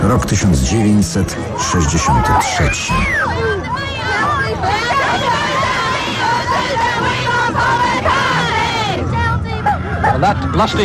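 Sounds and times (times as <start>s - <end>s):
speech: 0.2s - 3.6s, 10.2s - 10.8s
crowd of girls shouting excitedly from a ship: 1.5s - 10.0s.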